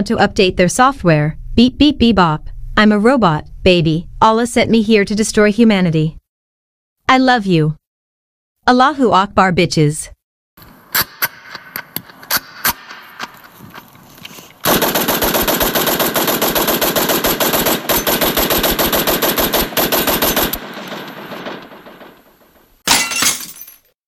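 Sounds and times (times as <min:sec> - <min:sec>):
speech: 0:00.0 - 0:06.2, 0:07.1 - 0:07.8, 0:08.6 - 0:10.2
long continuous burst of rapid automatic gunfire: 0:14.6 - 0:22.6
separate sharp gunshots: 0:14.6 - 0:22.7.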